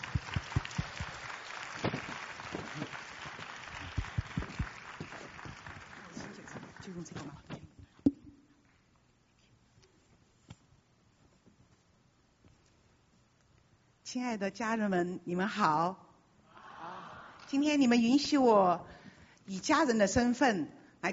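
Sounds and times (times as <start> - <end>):
audience applause welcoming a speaker: 0.0 - 7.1
speech: 7.0 - 7.5, 14.1 - 16.0, 17.5 - 21.1.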